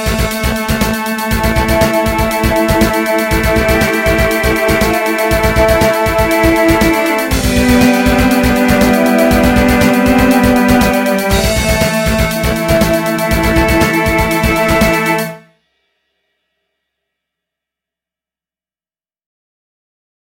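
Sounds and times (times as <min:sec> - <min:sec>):
bass: 0:00.0 - 0:15.4.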